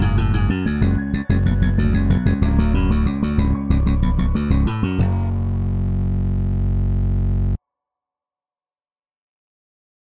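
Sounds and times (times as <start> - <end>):
quiet retro instrumental music: 0.0 - 7.5.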